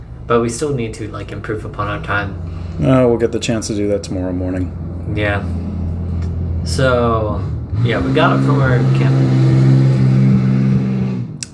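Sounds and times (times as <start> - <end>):
car engine revving outside motel: 0.0 - 11.5
speech: 0.3 - 5.6, 6.6 - 9.8
sharp click: 11.4 - 11.5.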